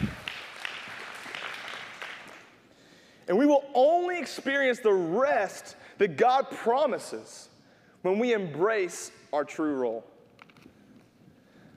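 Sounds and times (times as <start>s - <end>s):
audience clapping: 0.0s - 2.6s
speech: 3.3s - 10.1s.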